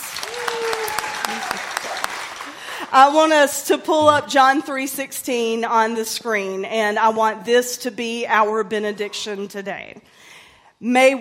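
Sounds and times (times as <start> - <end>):
audience clapping: 0.0 - 3.4
speech: 2.9 - 10.2, 10.8 - 11.2.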